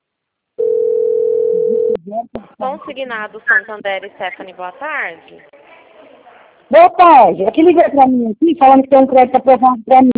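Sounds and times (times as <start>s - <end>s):
telephone dial tone before a call to a customer service line: 0.6s - 2.0s
speech: 2.1s - 5.6s, 6.7s - 10.1s.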